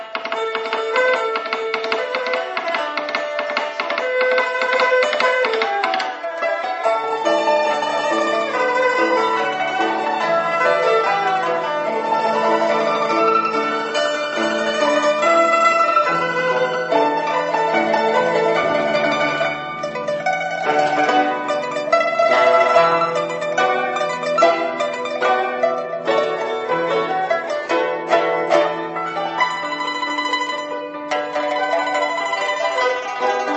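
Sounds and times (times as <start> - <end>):
song: 0.3 - 33.5.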